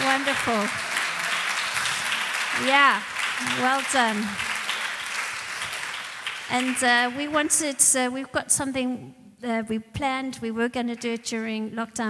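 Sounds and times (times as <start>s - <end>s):
audience cheering and applause: 0.0s - 7.5s
speech: 0.3s - 0.9s, 2.6s - 4.5s, 6.5s - 12.0s.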